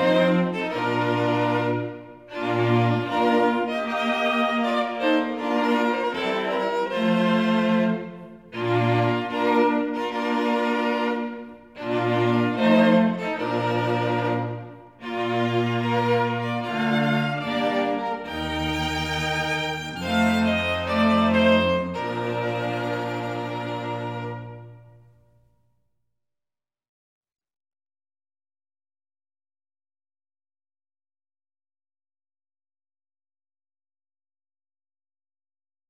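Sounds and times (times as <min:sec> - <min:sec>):
string quartet playing a wedding march: 0:00.0 - 0:25.1.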